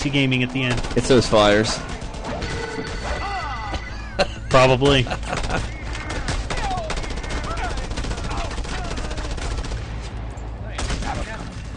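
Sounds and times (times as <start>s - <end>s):
speech: 0.0s - 2.0s, 4.2s - 5.7s
rapid fire from a big gun in a video game: 0.0s - 3.0s, 5.2s - 10.1s, 10.8s - 11.7s
laughter: 3.0s - 7.8s.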